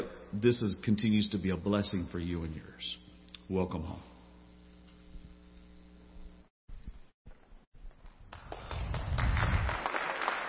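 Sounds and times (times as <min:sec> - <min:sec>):
speech: 0:00.3 - 0:04.1
audience applause: 0:08.2 - 0:10.4.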